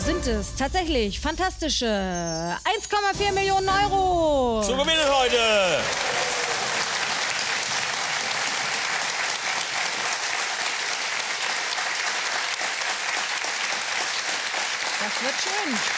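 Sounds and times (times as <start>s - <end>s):
speech: 0.1s - 6.2s, 15.2s - 15.9s
audience applause: 4.8s - 15.9s.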